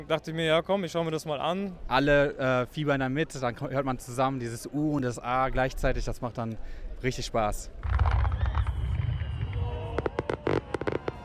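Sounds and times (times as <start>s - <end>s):
speech: 0.0s - 8.1s
fireworks display: 7.8s - 11.2s.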